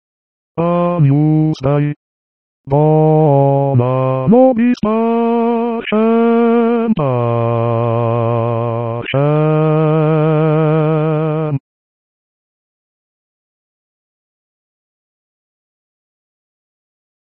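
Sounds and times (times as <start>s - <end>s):
basses singing: 0.6s - 2.0s, 2.7s - 11.6s.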